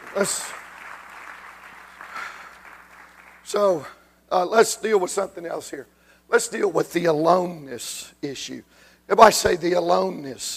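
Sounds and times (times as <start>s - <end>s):
audience clapping hands: 0.0s - 3.9s
speech: 0.2s - 0.6s, 3.5s - 10.5s.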